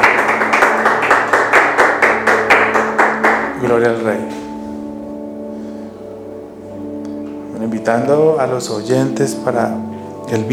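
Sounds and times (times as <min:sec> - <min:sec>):
audience applauding: 0:00.0 - 0:03.6
speech: 0:03.7 - 0:04.4, 0:07.8 - 0:10.5.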